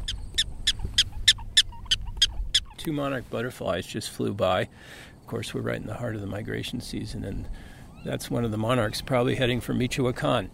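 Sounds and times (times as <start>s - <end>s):
prairie dog barking: 0.0s - 2.8s
speech: 2.8s - 10.5s.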